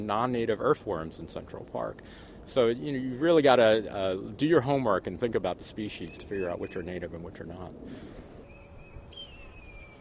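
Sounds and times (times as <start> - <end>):
speech: 0.0 - 8.2
blue jay mimicking red-tailed hawk call: 6.1 - 6.9, 8.4 - 9.9
quieter whistled note: 8.4 - 9.9.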